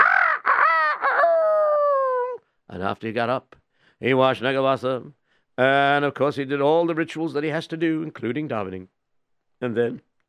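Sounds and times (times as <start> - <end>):
rooster crowing: 0.0 - 2.4
speech: 2.7 - 9.0, 9.6 - 10.1.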